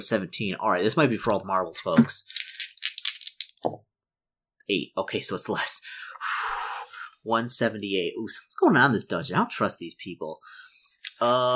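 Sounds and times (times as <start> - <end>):
speech: 0.0 - 2.4, 3.6 - 3.9, 4.7 - 6.2, 7.2 - 10.6, 11.2 - 11.5
two dice being rolled: 1.2 - 3.7.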